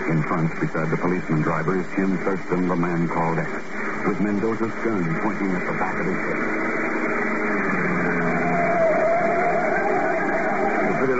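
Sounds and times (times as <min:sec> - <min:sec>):
speech: 0:00.1 - 0:06.7
black sedan engine droning up a curving mountain road in Puerto Rico: 0:05.7 - 0:11.1.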